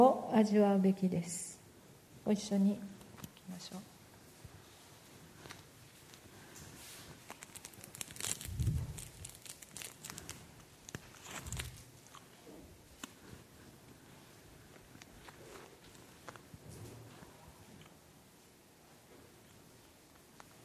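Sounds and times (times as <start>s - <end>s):
speech: 0.0s - 1.6s, 2.2s - 3.9s
crinkling and rustling as a congregation eats communion bread: 4.3s - 18.0s
congregation chewing communion bread during a church service: 4.4s - 18.0s.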